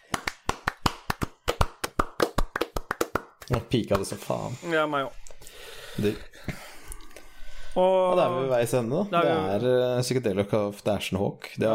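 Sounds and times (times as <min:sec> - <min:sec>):
small round of applause: 0:00.0 - 0:04.2
speech: 0:03.5 - 0:06.6, 0:07.8 - 0:11.7.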